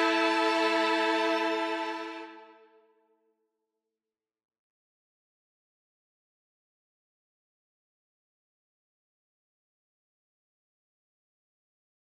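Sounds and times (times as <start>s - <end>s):
solo violin: 0.0s - 2.8s.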